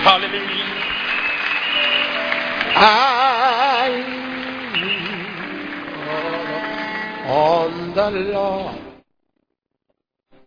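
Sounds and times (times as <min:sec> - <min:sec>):
audience clapping: 0:00.0 - 0:07.4
speech: 0:00.1 - 0:00.8, 0:02.7 - 0:04.2, 0:07.3 - 0:08.8.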